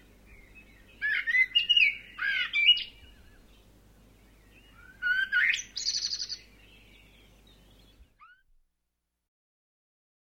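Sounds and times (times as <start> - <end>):
bird chirps: 0.3 - 3.7, 4.3 - 8.4.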